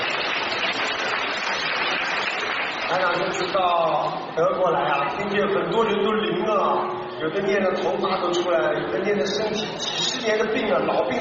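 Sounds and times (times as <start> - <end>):
audience applause: 0.0 - 3.8
speech: 2.9 - 11.1.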